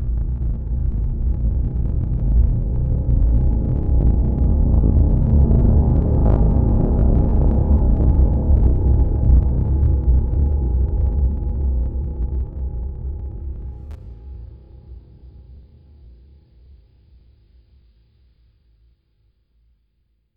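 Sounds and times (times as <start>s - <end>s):
scary ambient bass: 0.2s - 16.3s.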